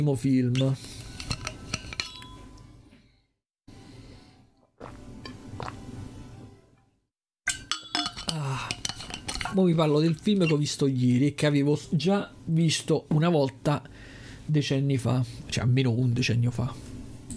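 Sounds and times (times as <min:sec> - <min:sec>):
speech: 0:00.0 - 0:01.0, 0:09.6 - 0:16.9
glass clinking: 0:01.2 - 0:02.8, 0:07.5 - 0:10.7
person drinking water: 0:04.6 - 0:06.0.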